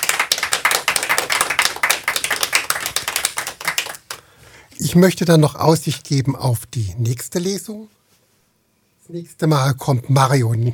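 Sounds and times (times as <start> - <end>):
audience applause: 0.0 - 4.2
speech: 4.8 - 8.0, 9.1 - 10.7.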